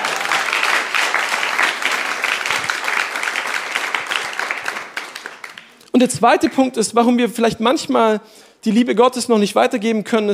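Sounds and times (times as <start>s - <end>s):
audience clapping: 0.0s - 6.7s
speech: 6.0s - 10.3s.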